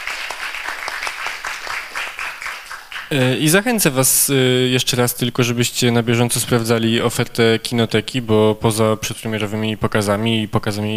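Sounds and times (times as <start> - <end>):
audience applause after film screening: 0.0 - 3.3
speech: 3.1 - 10.9.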